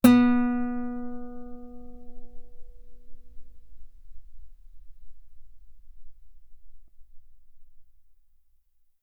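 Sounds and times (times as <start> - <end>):
guitar note B3: 0.0 - 5.7.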